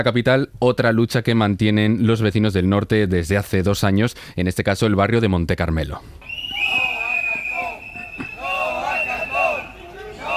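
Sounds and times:
speech: 0.0s - 6.7s
crowd of protesters chanting: 6.7s - 10.3s.

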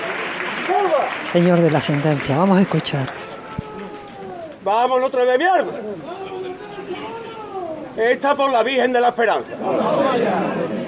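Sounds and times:
crowd applause after a saeta: 0.0s - 4.7s
speech: 0.8s - 3.3s, 4.6s - 6.2s, 8.0s - 10.8s.

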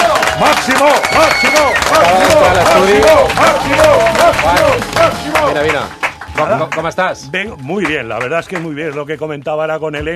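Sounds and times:
excited voices cheering: 0.0s - 5.8s
crowd applauding: 0.0s - 9.2s
speech: 0.4s - 10.1s.

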